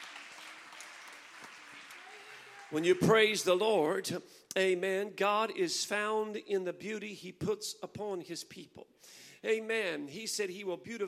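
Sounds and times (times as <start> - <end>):
audience clapping hands: 0.0 - 3.7
speech: 2.7 - 11.0.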